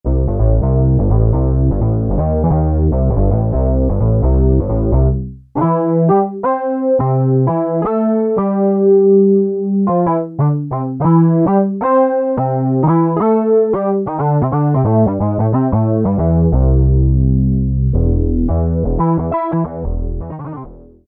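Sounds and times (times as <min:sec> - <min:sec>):
Kawai SX-240 synthesizer: 0:00.1 - 0:21.0.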